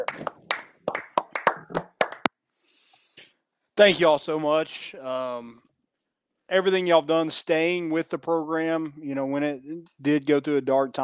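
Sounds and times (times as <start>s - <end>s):
standing ovation applause: 0.0s - 2.3s
speech: 3.8s - 5.7s, 6.5s - 11.0s.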